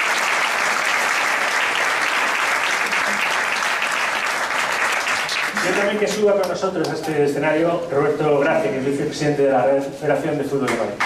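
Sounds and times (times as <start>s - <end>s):
audience applause: 0.0s - 7.0s
speech: 5.6s - 11.0s.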